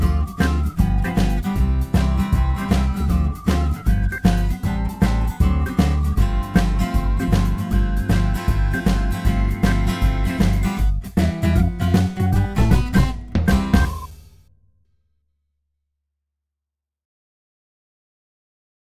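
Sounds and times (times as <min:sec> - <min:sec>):
karaoke music: 0:00.0 - 0:14.1.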